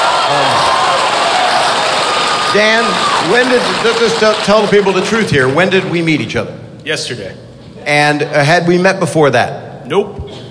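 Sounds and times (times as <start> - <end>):
audience applause for a guest brought on stage: 0.0 - 5.9
speech: 2.5 - 10.4.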